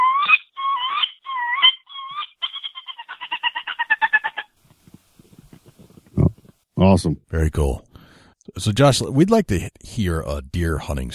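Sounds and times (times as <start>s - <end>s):
voice imitating a wood duck call: 0.0s - 2.6s
speech: 6.8s - 7.9s, 8.6s - 11.1s.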